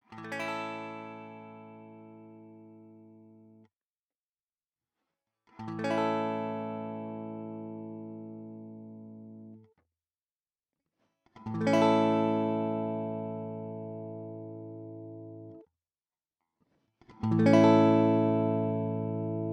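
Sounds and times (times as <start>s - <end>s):
guitar with high-pass filter sweeping low to high: 0.0s - 3.6s, 5.5s - 9.6s, 11.4s - 15.6s, 17.0s - 19.5s.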